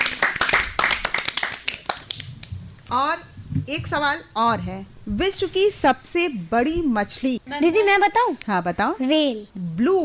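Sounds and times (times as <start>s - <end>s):
small group hand clapping in a quiz game: 0.0s - 2.5s
speech: 2.9s - 10.0s.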